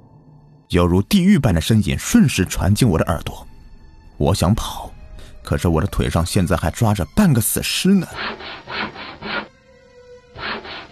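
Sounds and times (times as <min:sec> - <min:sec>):
speech: 0:00.7 - 0:03.5, 0:04.2 - 0:08.9
creaking sound of sawing something: 0:08.1 - 0:09.5, 0:10.4 - 0:10.8.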